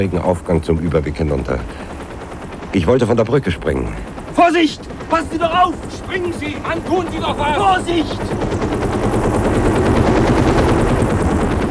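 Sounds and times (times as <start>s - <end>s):
speech: 0.0s - 1.9s, 2.7s - 9.0s
out-of-control automatically controlled helicopter rotor blades chopping: 0.0s - 11.6s
laughter: 1.7s - 10.5s.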